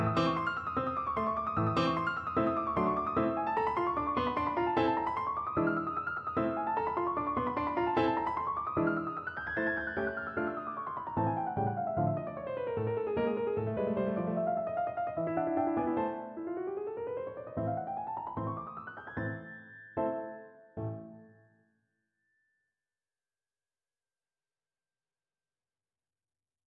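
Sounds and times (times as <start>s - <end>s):
piano piece: 0.0s - 21.6s.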